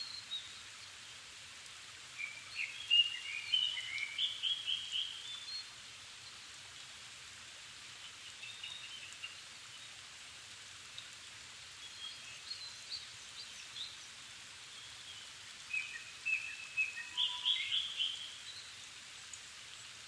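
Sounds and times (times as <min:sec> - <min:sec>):
background hiss: 0:00.0 - 0:20.0
Japanese thrush song: 0:02.2 - 0:05.4, 0:15.7 - 0:18.3.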